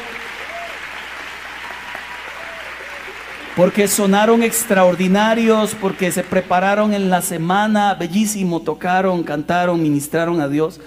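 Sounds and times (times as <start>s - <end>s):
audience applause: 0.0s - 7.4s
speech: 3.6s - 10.8s.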